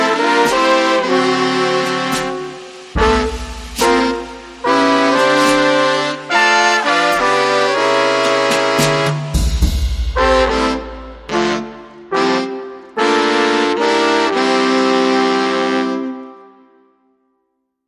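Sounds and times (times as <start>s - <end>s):
drums: 0.0s - 12.0s
horns: 0.0s - 16.8s.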